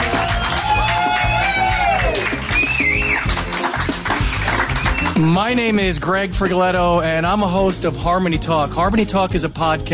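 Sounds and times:
crowd clapping: 0.0 - 5.4
speech: 5.2 - 9.9.

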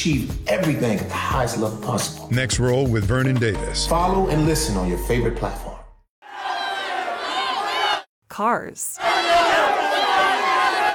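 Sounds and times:
speech: 0.0 - 5.7, 8.4 - 9.4
crowd yelling: 6.2 - 8.1, 9.0 - 10.9.

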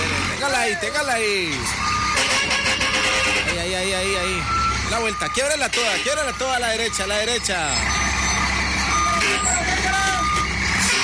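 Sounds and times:
engine and traffic rumble: 0.0 - 11.0
vehicle reversing with backup warning beeps: 0.0 - 11.0
speech: 0.5 - 1.8, 3.6 - 8.0.

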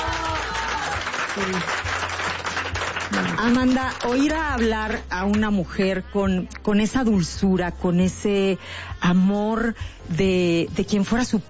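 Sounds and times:
crowd applauding: 0.0 - 4.6
speech: 1.4 - 2.0, 3.1 - 11.4.

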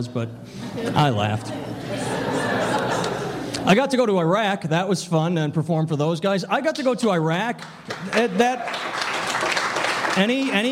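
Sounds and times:
speech: 0.0 - 2.7, 3.6 - 9.0, 10.2 - 10.6
laughter: 0.6 - 3.6
audience applause: 7.6 - 10.6.

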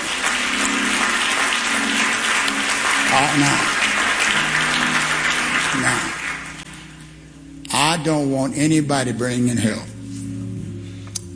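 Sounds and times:
audience clapping hands: 0.0 - 7.0
speech: 3.2 - 3.7, 5.8 - 6.2, 8.0 - 9.9.

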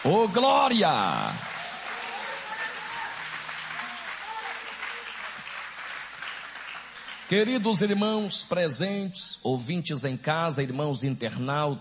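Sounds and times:
speech: 0.0 - 1.5, 7.3 - 11.7
audience applauding: 0.0 - 8.2.

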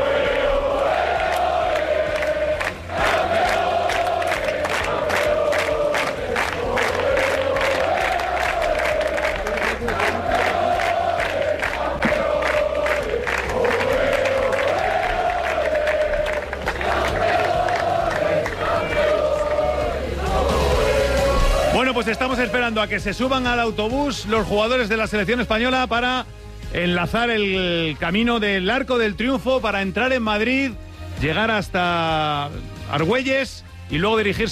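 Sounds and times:
staff crowd chanting and cheering for a team: 0.0 - 23.0
rhythmic clapping: 0.0 - 24.0
speech: 22.4 - 34.5.

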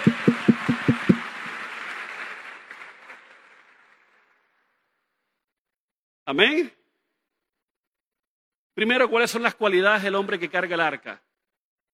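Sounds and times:
audience applause: 0.0 - 4.7
speech: 6.3 - 6.8, 8.8 - 11.3.

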